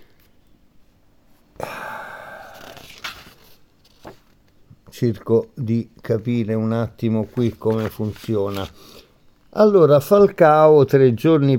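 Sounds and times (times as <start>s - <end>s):
turning a paper page: 2.4s - 4.4s, 7.2s - 8.8s
speech: 5.0s - 9.0s, 9.6s - 11.5s.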